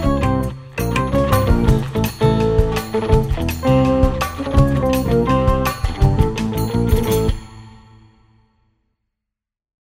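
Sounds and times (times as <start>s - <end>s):
Turkish funk music: 0.0s - 7.7s.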